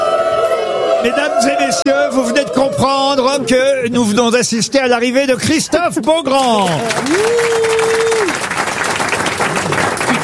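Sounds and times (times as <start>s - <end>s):
speech: 1.0s - 8.4s
audience applauding: 6.4s - 10.2s.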